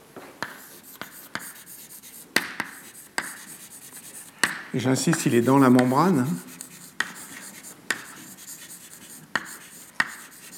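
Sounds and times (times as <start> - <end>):
handwriting strokes scratching while writing an equation: 0.4 - 10.5
speech: 4.7 - 6.5.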